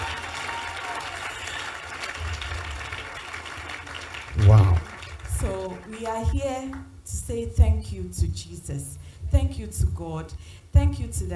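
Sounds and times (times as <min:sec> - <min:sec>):
audience clapping: 0:00.0 - 0:06.9
speech: 0:06.0 - 0:11.3.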